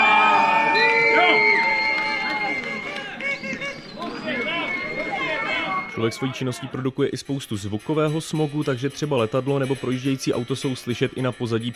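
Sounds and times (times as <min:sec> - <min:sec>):
crowd shouting at an outdoor football match: 0:00.0 - 0:07.0
speech: 0:06.0 - 0:11.7.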